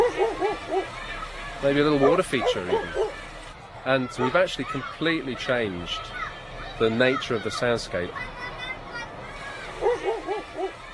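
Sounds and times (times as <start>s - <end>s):
dog barking: 0.0s - 0.9s, 2.0s - 3.2s, 9.8s - 10.8s
murmuring crowd noise: 0.0s - 10.9s
street hubbub: 0.0s - 10.9s
speech: 1.6s - 3.0s, 3.8s - 6.2s, 6.8s - 8.3s.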